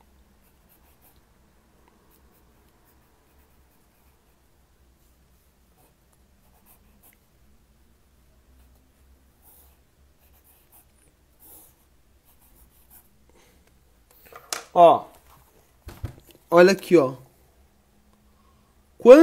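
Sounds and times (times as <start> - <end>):
pen drawing a diagram on paper: 0.4 - 1.3, 2.1 - 4.4, 5.8 - 7.2, 9.4 - 13.1
speech: 14.8 - 15.1, 16.5 - 17.2, 19.0 - 19.2.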